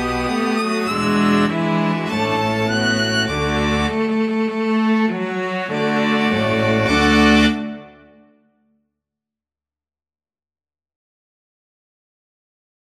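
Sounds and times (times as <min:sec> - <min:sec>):
string ensemble playing: 0:00.0 - 0:08.4.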